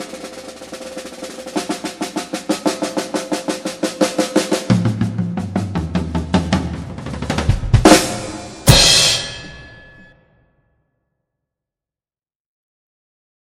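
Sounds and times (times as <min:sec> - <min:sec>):
drum solo: 0:00.0 - 0:10.2.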